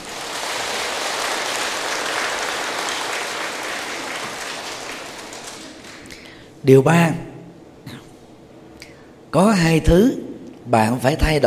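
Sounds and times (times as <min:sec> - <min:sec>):
audience applause: 0:00.0 - 0:06.2
speech: 0:06.6 - 0:07.3, 0:09.4 - 0:11.4.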